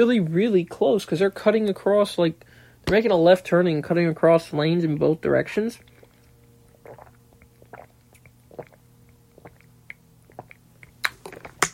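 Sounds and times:
speech: 0.0s - 5.9s
person gulping water: 5.8s - 11.7s.

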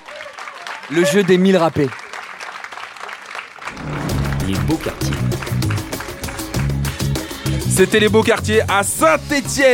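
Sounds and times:
crowd cheering: 0.0s - 7.4s
loud audience applause: 0.0s - 7.6s
speech: 0.9s - 2.0s, 4.5s - 5.8s, 7.8s - 9.7s.

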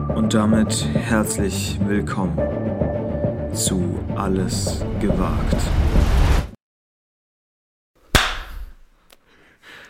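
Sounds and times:
speech: 0.2s - 2.8s, 3.5s - 6.3s
hand clap for audio sync: 8.2s - 8.7s.

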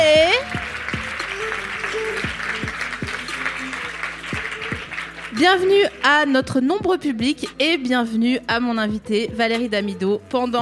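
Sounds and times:
live podcast festival audience in Paris applauding and cheering: 0.0s - 6.1s
show's theme music: 0.0s - 10.6s
speech: 5.4s - 10.6s.

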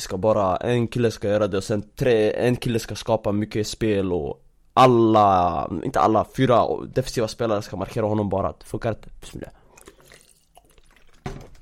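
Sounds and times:
speech: 0.0s - 9.6s
person drinking water: 9.4s - 11.6s.

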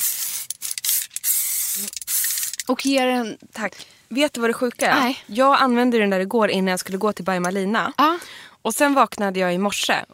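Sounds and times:
perfume sprayed from a perfume bottle: 0.0s - 2.6s
speech: 1.8s - 2.0s, 2.7s - 10.1s.

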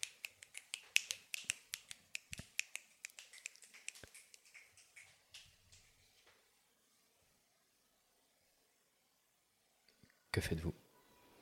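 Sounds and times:
dozens of fingers snapping: 0.0s - 5.8s
speech: 10.4s - 10.7s.

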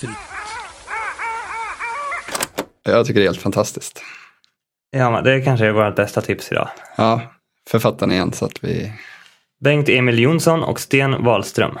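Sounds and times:
speech: 0.0s - 0.3s, 2.8s - 4.3s, 4.9s - 11.7s
flock of sea birds calling in chorus: 0.0s - 2.5s.

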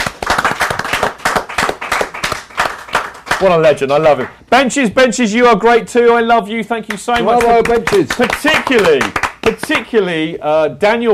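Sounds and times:
group of people clapping: 0.0s - 4.4s, 6.8s - 10.0s
speech: 3.4s - 11.1s.

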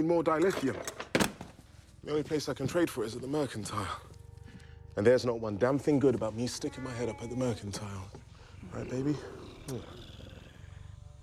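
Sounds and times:
speech: 0.0s - 1.0s, 2.0s - 4.1s, 5.0s - 10.0s
large cat growling: 6.8s - 11.2s.

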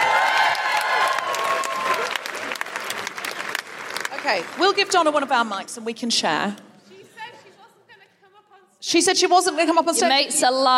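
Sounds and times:
audience applause: 0.0s - 5.3s
speech: 4.2s - 6.7s, 8.8s - 10.7s.

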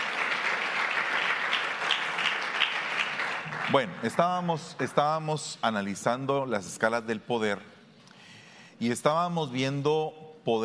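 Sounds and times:
audience applauding: 0.0s - 5.2s
speech: 3.7s - 7.7s, 8.8s - 10.6s.

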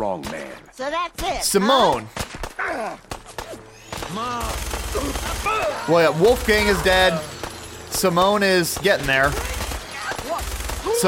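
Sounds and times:
speech: 0.2s - 3.1s, 4.1s - 7.3s, 7.9s - 9.5s
minigun gunfire in a video game: 3.4s - 7.6s, 8.7s - 11.0s.

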